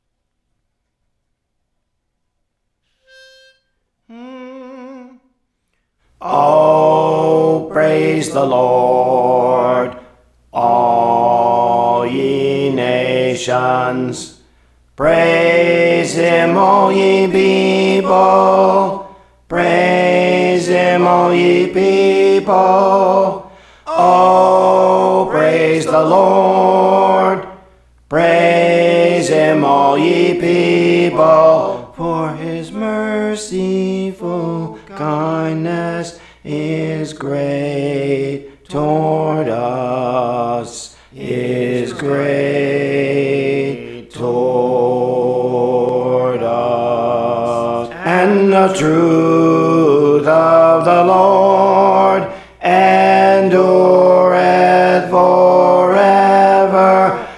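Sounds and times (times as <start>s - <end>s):
alto voice singing songs: 4.1s - 5.3s, 6.2s - 57.3s.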